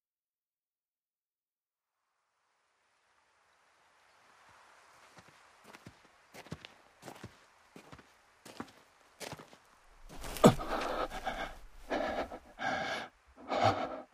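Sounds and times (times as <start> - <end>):
running footsteps of a person carrying someone: 5.1 - 14.1.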